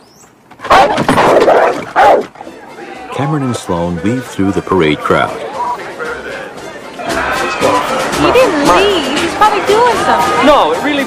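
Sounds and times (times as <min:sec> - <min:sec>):
agitated dog barking: 0:00.6 - 0:02.6
speech: 0:03.2 - 0:05.6, 0:08.2 - 0:11.0.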